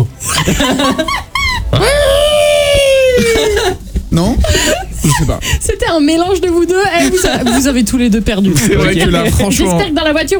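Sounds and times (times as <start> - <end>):
laughter: 0.0 - 5.9, 6.8 - 7.9
speech: 0.5 - 2.2, 4.2 - 10.3
voice imitating a growling alien creature roar: 1.5 - 3.6.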